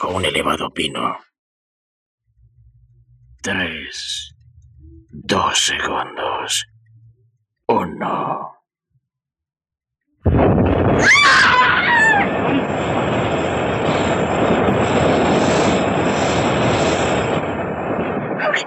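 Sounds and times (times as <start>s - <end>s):
speech: 0.1s - 1.3s, 3.4s - 4.4s, 5.2s - 6.7s, 7.7s - 8.6s
explosion: 10.2s - 18.6s.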